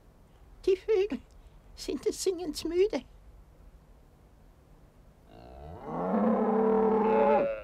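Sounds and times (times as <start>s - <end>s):
speech: 0.6s - 3.1s
cow mooing: 5.3s - 7.6s.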